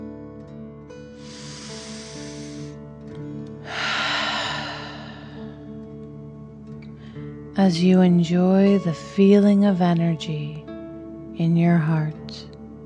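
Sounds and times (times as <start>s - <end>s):
soft musical drone: 0.9s - 10.8s
slow deep breath in and out during a guided meditation: 1.2s - 2.8s, 3.6s - 5.7s
speech: 7.6s - 10.7s, 11.4s - 12.5s.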